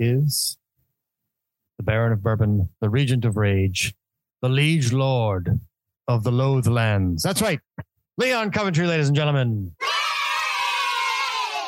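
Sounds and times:
speech: 0.0 - 0.6, 1.8 - 9.8
crowd cheering: 9.8 - 11.6.

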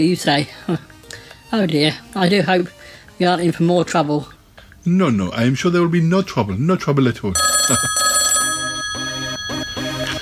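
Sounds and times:
speech: 0.0 - 0.9, 1.5 - 8.1
telephone ringing with a bell-like trill: 7.4 - 10.2.

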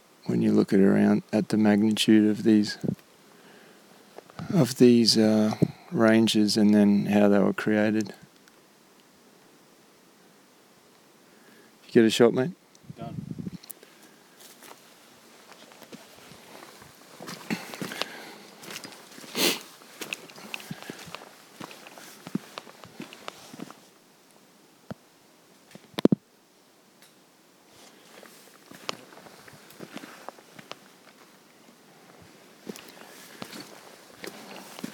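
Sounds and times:
speech: 0.2 - 3.0, 4.5 - 8.2, 11.9 - 13.3
footsteps walking along a track among mountain ranges: 14.4 - 23.9, 27.7 - 31.4, 32.0 - 34.9.

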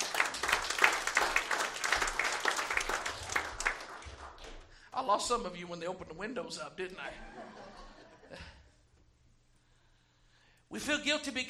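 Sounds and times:
audience clapping hands: 0.0 - 5.0
speech: 5.1 - 7.4, 10.8 - 11.4
laughter: 7.1 - 8.7.

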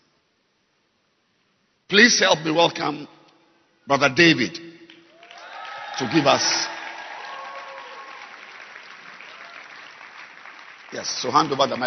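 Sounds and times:
speech: 1.9 - 3.2, 3.9 - 4.7, 6.0 - 6.7, 11.0 - 11.8
audience applauding: 5.1 - 11.8.

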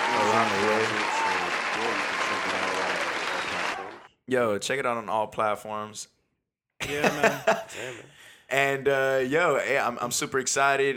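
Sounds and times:
applause: 0.0 - 4.1
speech: 0.4 - 1.2, 4.3 - 6.2, 6.8 - 10.9
laughter: 6.8 - 8.1.

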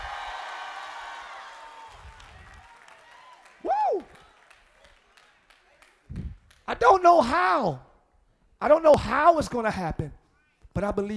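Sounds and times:
audience screaming and cheering: 0.0 - 5.0
speech: 6.9 - 7.9, 8.6 - 10.2, 10.8 - 11.1.

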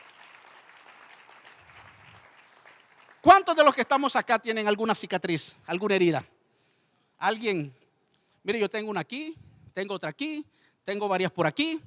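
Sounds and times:
audience applause: 0.0 - 3.5
speech: 3.2 - 6.4, 7.2 - 7.8, 8.4 - 11.8.

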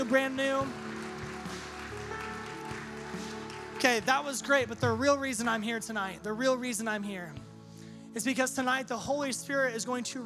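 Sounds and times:
audience applause: 0.0 - 5.6
speech: 0.1 - 0.9, 3.8 - 7.5, 8.2 - 10.2.

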